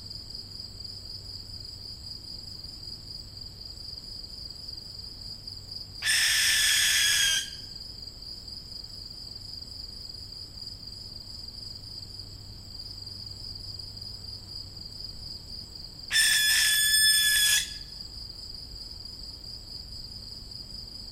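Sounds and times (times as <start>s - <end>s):
young barn owl hissing screech: 6.0s - 7.6s, 16.1s - 17.9s.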